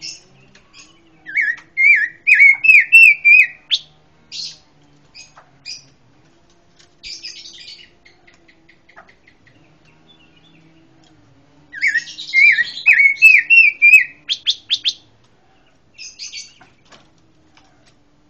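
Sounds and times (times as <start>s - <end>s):
pancawarna songbird singing wavering whistled notes, buzzy chirps and rasping trill: 0.0s - 5.9s, 7.0s - 11.0s, 11.7s - 15.1s, 15.7s - 16.8s.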